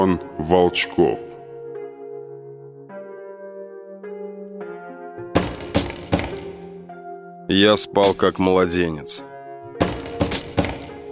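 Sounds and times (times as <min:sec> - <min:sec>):
speech: 0:00.0 - 0:01.4, 0:07.5 - 0:09.3
pounding knock on a door: 0:05.4 - 0:06.6, 0:09.8 - 0:11.1.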